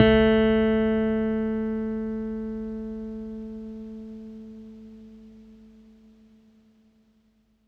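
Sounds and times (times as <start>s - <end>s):
bass note A on Chapman Stick: 0.0s - 5.9s.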